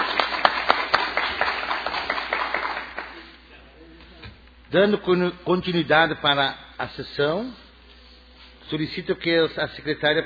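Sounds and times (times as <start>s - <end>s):
people applauding in a council chamber: 0.0s - 3.4s
speech: 4.7s - 7.6s, 8.7s - 10.2s.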